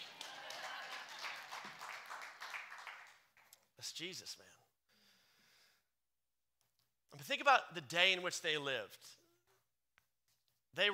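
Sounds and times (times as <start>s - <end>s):
audience clapping: 0.0s - 3.6s
speech: 3.8s - 4.6s, 7.1s - 9.2s, 10.8s - 10.9s.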